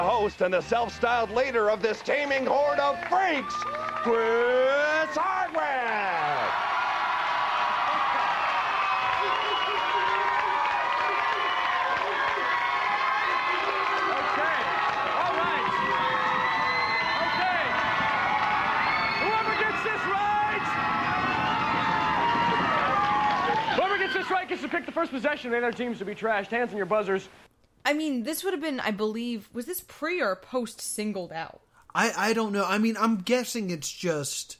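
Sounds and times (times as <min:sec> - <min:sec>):
studio audience cheering: 0:00.0 - 0:26.6
speech: 0:00.2 - 0:06.6, 0:24.5 - 0:34.5.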